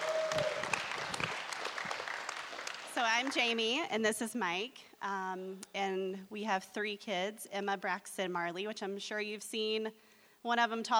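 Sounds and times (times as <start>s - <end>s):
audience applause: 0.0s - 3.4s
speech: 3.2s - 10.9s.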